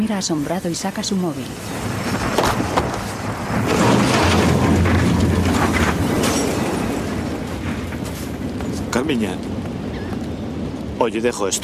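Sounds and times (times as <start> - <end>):
speech: 0.0 - 2.0, 9.1 - 9.6, 11.0 - 11.6
crackling bursts: 0.0 - 11.0
car bomb explosion: 1.9 - 7.5.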